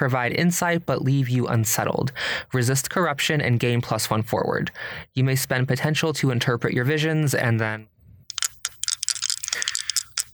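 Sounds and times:
speech: 0:00.0 - 0:07.9
physical dice rolled during a tabletop roleplaying game: 0:08.3 - 0:10.3.

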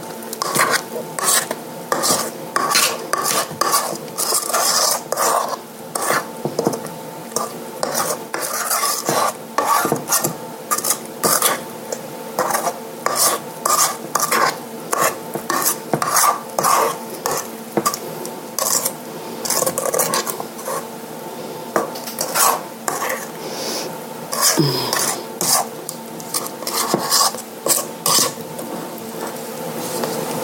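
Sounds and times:
spoon stirring thick batter in a bowl: 0:00.3 - 0:20.9, 0:21.8 - 0:23.4, 0:24.3 - 0:30.3.

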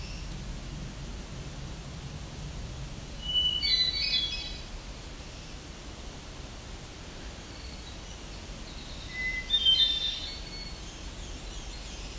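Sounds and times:
steady hiss: 0:00.0 - 0:12.1
black-throated warbler buzzy song: 0:03.2 - 0:04.7, 0:07.4 - 0:12.1.

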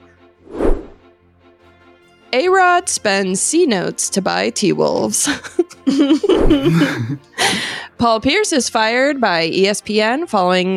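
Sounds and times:
whoosh transition effect: 0:00.4 - 0:01.0
speech: 0:02.3 - 0:10.7
laughter: 0:05.1 - 0:07.8.

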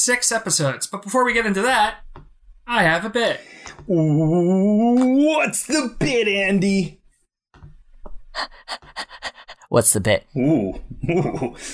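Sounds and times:
speech: 0:00.0 - 0:07.0, 0:08.4 - 0:11.7
low vocal grunt: 0:03.9 - 0:04.9
person imitating eager dog panting: 0:08.4 - 0:09.7
laughter: 0:10.9 - 0:11.7.

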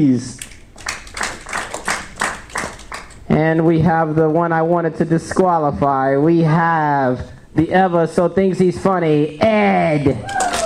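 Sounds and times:
speech: 0:00.0 - 0:00.5, 0:03.3 - 0:10.4
hand clapping: 0:00.4 - 0:03.2, 0:10.3 - 0:10.6.

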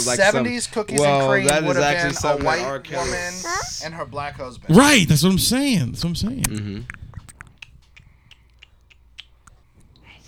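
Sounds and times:
speech: 0:00.0 - 0:07.0
child chewing on a microphone: 0:06.2 - 0:10.2.

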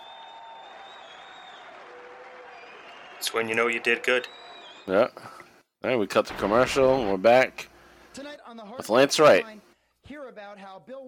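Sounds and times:
fans applauding, standing ovation: 0:00.0 - 0:05.1
speech: 0:03.2 - 0:11.0.

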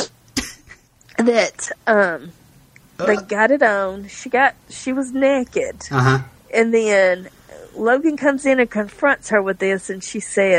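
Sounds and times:
sneeze: 0:00.0 - 0:00.6
speech: 0:01.2 - 0:02.4, 0:03.0 - 0:10.5.

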